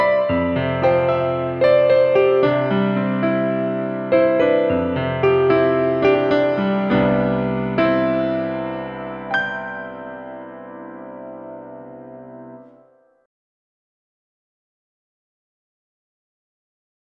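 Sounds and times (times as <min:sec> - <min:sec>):
piano: 0:00.0 - 0:13.3.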